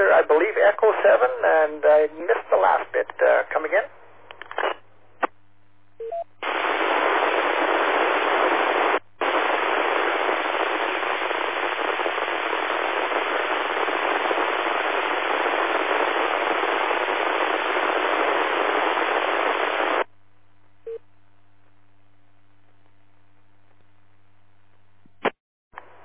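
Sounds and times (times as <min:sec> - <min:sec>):
radio static from handheld transceiver: 0:00.0 - 0:03.9, 0:04.5 - 0:05.3, 0:06.4 - 0:20.1
speech: 0:00.2 - 0:03.9.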